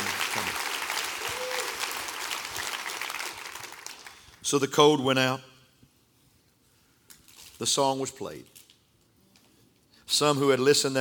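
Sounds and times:
audience clapping hands: 0.0 - 4.4
speech: 4.5 - 5.5, 7.6 - 8.6, 10.1 - 10.9.

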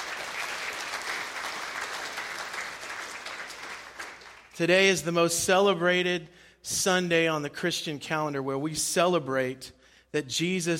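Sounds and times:
audience applause: 0.0 - 4.6
speech: 4.6 - 10.7.

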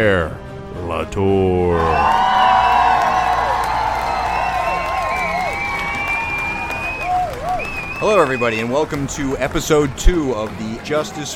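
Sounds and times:
speech: 0.0 - 2.4, 8.0 - 11.3
audience clapping to welcome two podcast hosts: 1.8 - 11.3.

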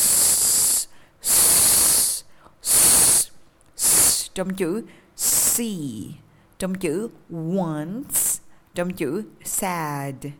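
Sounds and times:
voiceless hissing s consonant: 0.0 - 4.3, 5.2 - 5.7
speech: 4.4 - 10.3.

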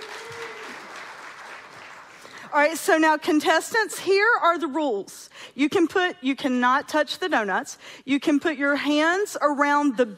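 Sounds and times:
audience clapping: 0.0 - 2.5
speech: 2.5 - 10.1.

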